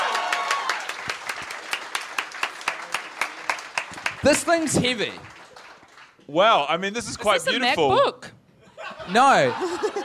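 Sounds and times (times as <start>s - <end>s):
audience applause: 0.0s - 6.2s
speech: 4.2s - 5.3s, 6.3s - 8.3s, 9.1s - 9.9s
laughter: 8.6s - 10.0s.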